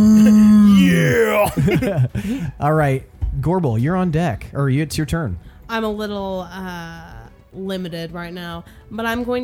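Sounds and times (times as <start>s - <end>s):
voice imitating a creature screaming behind a wall: 0.1s - 1.7s
speech: 1.8s - 9.4s.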